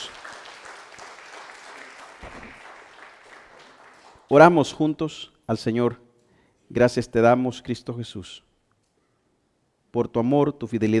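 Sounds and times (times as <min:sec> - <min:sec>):
church congregation applause: 0:00.0 - 0:04.3
speech: 0:04.3 - 0:06.0, 0:06.7 - 0:08.5, 0:09.9 - 0:10.9.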